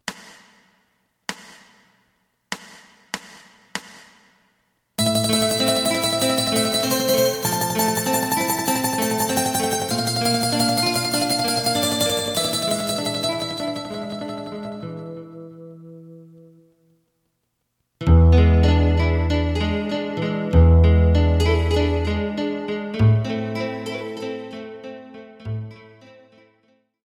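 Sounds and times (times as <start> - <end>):
lead melody: 5.0 - 16.5, 18.0 - 25.8.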